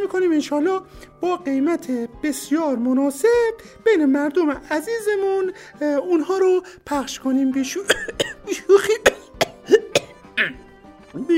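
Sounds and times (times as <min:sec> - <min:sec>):
speech: 0:00.1 - 0:09.2
harsh throaty coughing in a comic sketch: 0:07.9 - 0:10.7.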